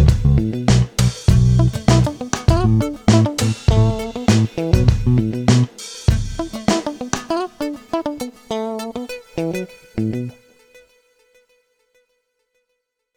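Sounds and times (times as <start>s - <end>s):
disco music: 0.0s - 10.2s.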